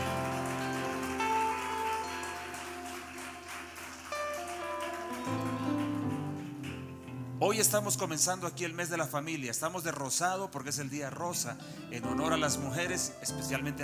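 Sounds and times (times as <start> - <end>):
audience applauding: 0.0 - 7.1
speech: 7.4 - 13.8.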